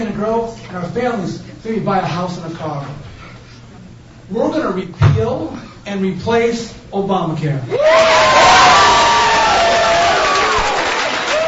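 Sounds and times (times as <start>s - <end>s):
speech: 0.1s - 3.1s, 4.3s - 8.8s
whoops and raised voices: 7.7s - 11.4s
large partisan crowd cheering and applauding: 7.8s - 11.4s.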